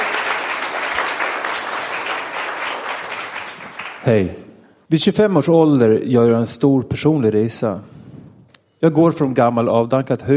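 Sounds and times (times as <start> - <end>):
audience applause: 0.0 - 4.3
speech: 4.0 - 8.0, 8.8 - 10.3.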